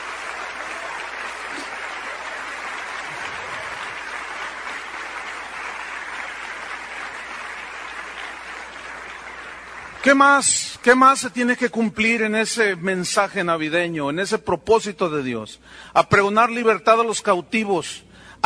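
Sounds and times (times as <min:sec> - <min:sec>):
audience applauding: 0:00.0 - 0:10.7
speech: 0:10.0 - 0:18.4.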